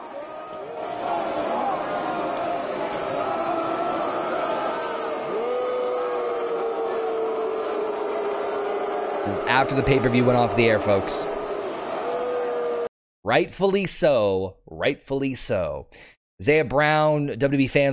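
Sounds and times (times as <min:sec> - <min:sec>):
crowd booing: 0:00.0 - 0:12.9
speech: 0:09.2 - 0:11.4, 0:13.3 - 0:17.9.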